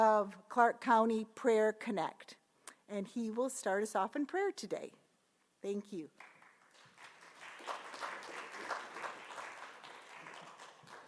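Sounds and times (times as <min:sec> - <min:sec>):
speech: 0:00.0 - 0:05.0, 0:05.6 - 0:06.3
audience clapping: 0:06.2 - 0:11.0.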